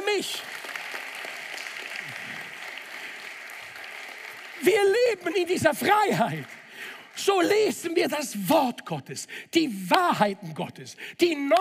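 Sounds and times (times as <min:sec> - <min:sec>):
audience applause: 0:00.0 - 0:07.7
speech: 0:00.2 - 0:00.6, 0:04.6 - 0:06.6, 0:07.2 - 0:11.5.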